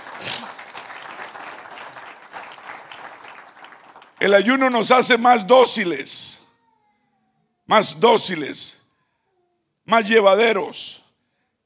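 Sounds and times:
audience applause: 0.0s - 4.4s
speech: 4.2s - 6.4s, 7.7s - 8.8s, 9.9s - 11.0s.

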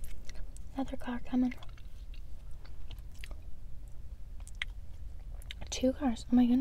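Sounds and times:
chewing crunchy food: 0.0s - 5.8s
speech: 0.8s - 1.7s, 5.8s - 6.5s.

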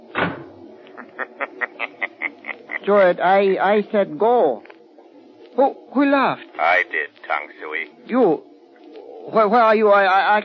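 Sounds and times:
door shutting: 0.1s - 0.6s
laughter: 0.9s - 3.1s
speech: 2.9s - 4.7s, 5.6s - 8.5s, 9.3s - 10.4s.

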